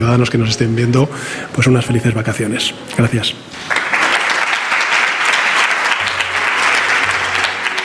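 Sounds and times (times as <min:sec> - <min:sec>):
speech: 0:00.0 - 0:03.8
ministers applauding: 0:03.6 - 0:07.8.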